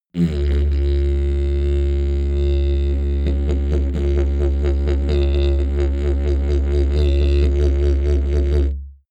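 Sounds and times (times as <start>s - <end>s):
didgeridoo wobble sequence: 0.2s - 8.9s.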